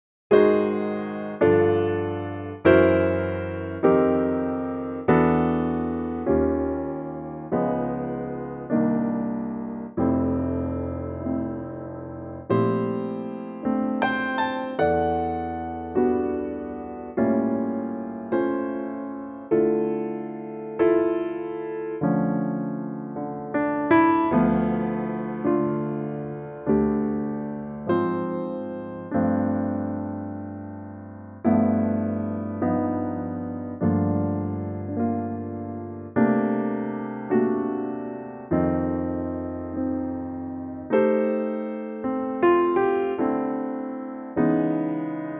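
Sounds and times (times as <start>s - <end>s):
piano note F: 0.3s - 45.3s.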